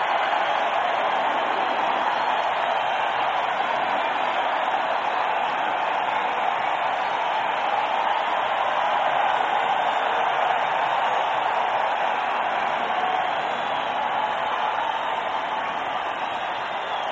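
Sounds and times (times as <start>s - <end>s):
stadium crowd cheering: 0.0s - 17.1s.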